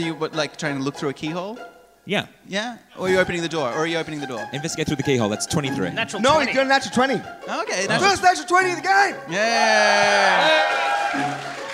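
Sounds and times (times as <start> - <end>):
speech: 0.0 - 11.5
audience cheering: 9.2 - 11.7.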